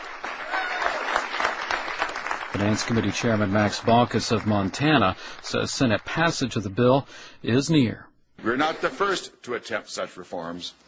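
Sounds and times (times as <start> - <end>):
crowd applauding Senate Democrats at a press conference on Capitol Hill: 0.0 - 6.5
speech: 2.5 - 10.8.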